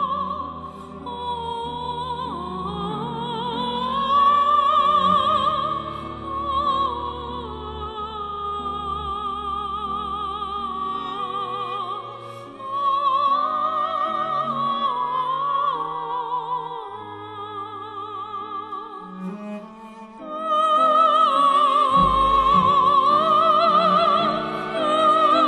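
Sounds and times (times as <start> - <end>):
soprano singing vocalise: 0.0 - 25.4.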